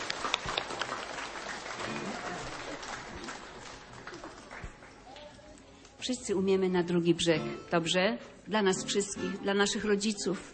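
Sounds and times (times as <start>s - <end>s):
audience applause: 0.0s - 5.3s
speech: 6.0s - 10.5s.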